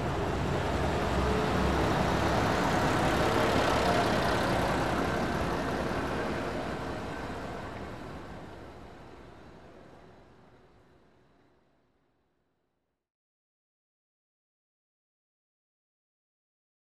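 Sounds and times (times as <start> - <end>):
roadside station ambience in Italy: 0.0 - 11.2.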